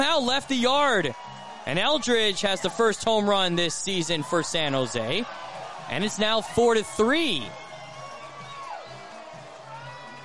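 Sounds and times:
speech: 0:00.0 - 0:07.6
San Jose baseball crowd cheering after home run: 0:00.0 - 0:10.2.

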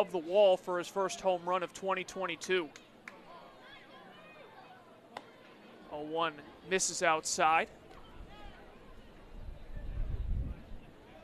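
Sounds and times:
speech: 0:00.0 - 0:02.9, 0:06.0 - 0:07.8
faint crowd chatter: 0:00.0 - 0:11.2
wind buffeting crowd microphone: 0:09.2 - 0:10.9.

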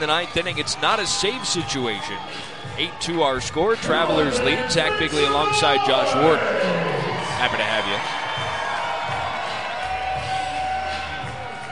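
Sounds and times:
speech: 0:00.0 - 0:08.3
baseball crowd cheering: 0:03.8 - 0:11.7.

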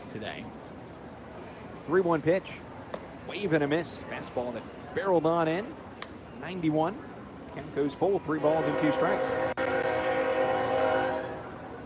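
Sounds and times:
speech: 0:00.1 - 0:00.8, 0:01.8 - 0:05.8, 0:06.4 - 0:10.0
train horn passing a minor-league ballpark in Montgomery: 0:08.3 - 0:11.7.

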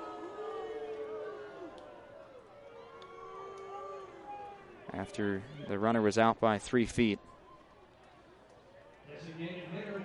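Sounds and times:
baseball crowd booing: 0:00.0 - 0:05.7
speech: 0:04.9 - 0:07.3.

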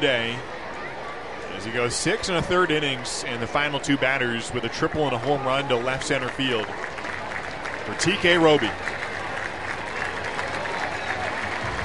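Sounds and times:
speech: 0:00.0 - 0:00.6, 0:01.6 - 0:06.9, 0:07.9 - 0:09.0
crowd with many children clapping for a pitcher at a baseball game: 0:05.0 - 0:11.8.

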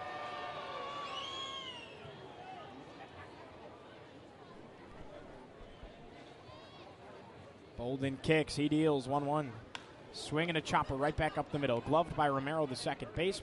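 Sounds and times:
baseball crowd cheering in Salem: 0:00.0 - 0:03.2, 0:10.5 - 0:13.4
baseball crowd chatter in Salem: 0:00.0 - 0:13.4
speech: 0:07.8 - 0:13.4.

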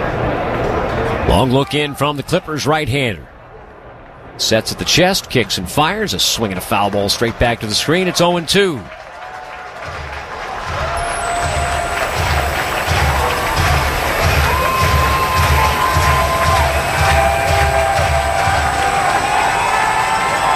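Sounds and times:
ballpark crowd cheering: 0:00.0 - 0:03.0, 0:03.6 - 0:20.5
speech: 0:01.3 - 0:03.3, 0:04.4 - 0:09.0
low rhythmic thumping: 0:09.9 - 0:19.5
people shouting: 0:10.8 - 0:20.5
whistles: 0:10.9 - 0:20.5.

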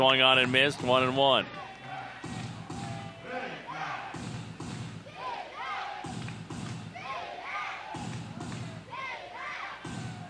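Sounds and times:
speech: 0:00.0 - 0:01.6
heavy thumping stomps or claps: 0:00.0 - 0:10.2
baseball crowd chanting: 0:01.4 - 0:10.2.

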